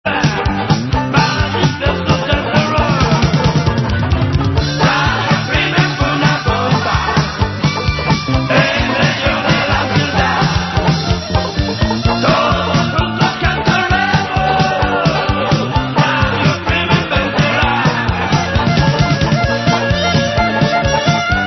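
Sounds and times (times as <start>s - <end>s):
music beat: 0.3s - 21.4s.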